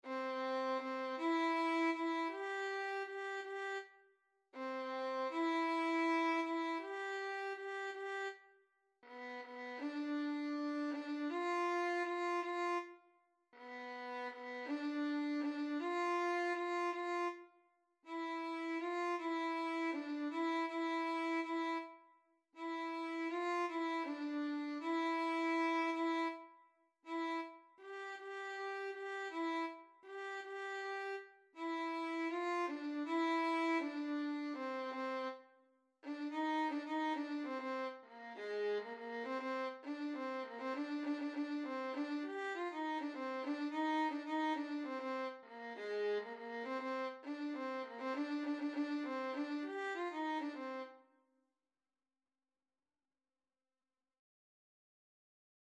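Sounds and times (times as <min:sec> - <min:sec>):
simple violin: 0:00.0 - 0:51.0.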